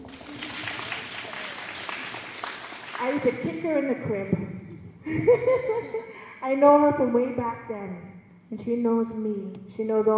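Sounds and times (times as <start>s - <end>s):
laughter: 0.0s - 2.6s, 5.0s - 6.3s
audience applause: 0.0s - 3.3s
speech: 3.0s - 10.1s.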